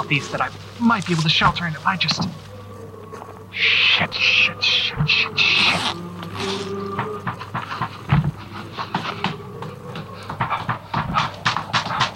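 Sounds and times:
speech: 0.0 - 2.5, 3.5 - 7.1
ferrets scrabbling at a door: 6.4 - 12.1.

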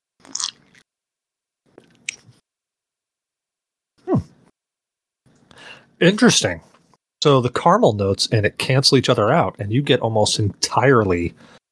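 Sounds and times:
sipping and swallowing bourbon mixed with Coke: 0.2 - 0.8, 1.7 - 2.3
speech: 6.0 - 11.6.

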